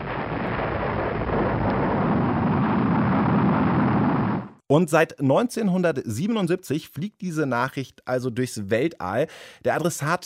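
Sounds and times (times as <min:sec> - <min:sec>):
rocket launch roar: 0:00.0 - 0:04.6
speech: 0:04.7 - 0:10.2.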